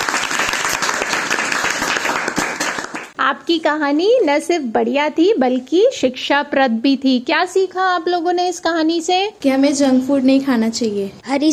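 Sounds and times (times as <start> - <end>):
loud applause: 0.0 - 3.2
speech: 3.3 - 11.5.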